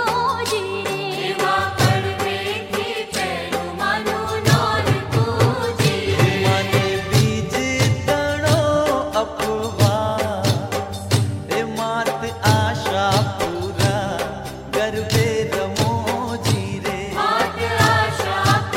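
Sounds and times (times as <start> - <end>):
Garba folk dance music: 0.1 - 18.7.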